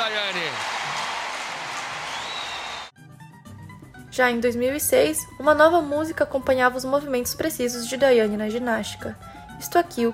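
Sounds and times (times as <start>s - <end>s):
large crowd clapping and cheering: 0.0s - 2.9s
thin whistle: 2.1s - 2.9s
speech: 4.2s - 10.1s.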